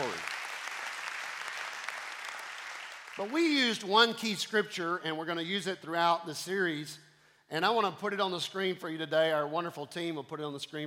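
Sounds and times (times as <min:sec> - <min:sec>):
audience clapping hands: 0:00.0 - 0:04.2
speech: 0:03.2 - 0:10.8.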